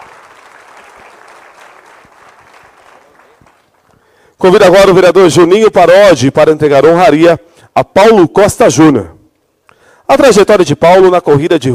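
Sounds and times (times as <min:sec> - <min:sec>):
audience applause: 0:00.0 - 0:03.9
speech: 0:04.4 - 0:09.2, 0:10.1 - 0:11.7.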